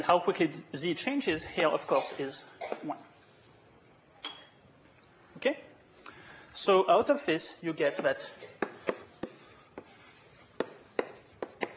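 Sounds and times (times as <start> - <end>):
speech: 0.0 - 3.2, 5.4 - 5.7, 6.6 - 9.0
writing on a board during a maths lecture: 8.0 - 11.7.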